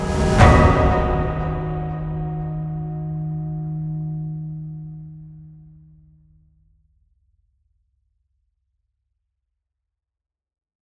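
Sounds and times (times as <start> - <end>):
grand bells ringing: 0.0 - 5.9.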